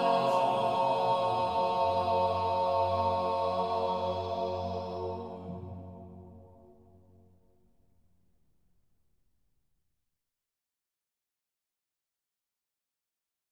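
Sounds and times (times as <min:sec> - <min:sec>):
Corsican choir chanting a kyrie in organum: 0:00.0 - 0:06.7.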